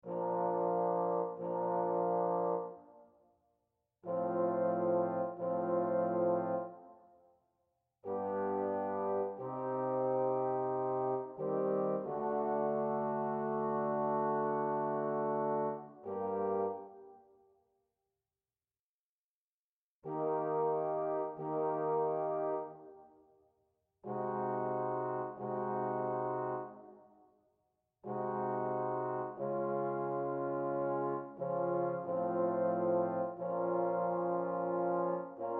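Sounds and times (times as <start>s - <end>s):
trombone quartet: 0.0s - 2.8s, 4.0s - 6.7s, 8.1s - 16.9s, 20.1s - 22.8s, 24.0s - 26.8s, 28.0s - 35.5s.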